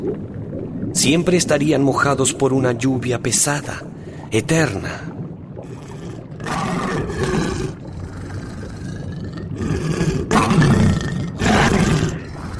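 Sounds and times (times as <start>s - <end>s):
speech: 0.0s - 5.1s
monstrous three-headed dog roaring and snarling: 6.4s - 12.5s.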